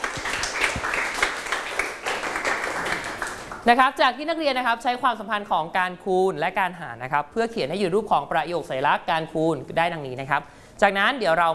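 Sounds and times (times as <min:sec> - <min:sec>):
classroom applause: 0:00.0 - 0:03.6
speech: 0:03.6 - 0:11.5.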